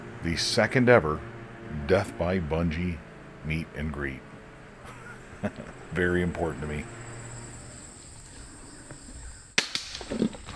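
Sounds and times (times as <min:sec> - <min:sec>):
speech: 0:00.2 - 0:01.3, 0:01.9 - 0:04.3, 0:05.4 - 0:07.0
laughter: 0:04.8 - 0:06.3
crossbow shot during a hunt: 0:09.6 - 0:10.1.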